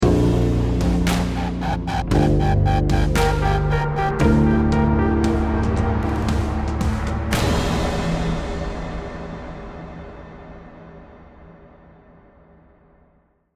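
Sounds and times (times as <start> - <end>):
lost round music: 0.0 - 10.4.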